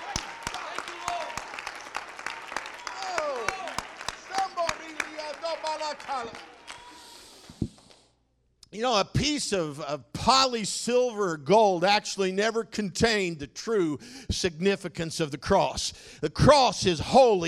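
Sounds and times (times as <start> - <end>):
audience clapping hands: 0.0 - 8.0
speech: 8.8 - 17.4.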